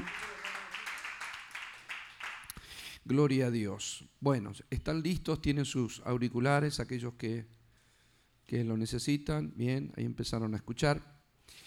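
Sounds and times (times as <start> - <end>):
audience applause: 0.0 - 2.5
speech: 3.1 - 7.6, 8.5 - 11.6.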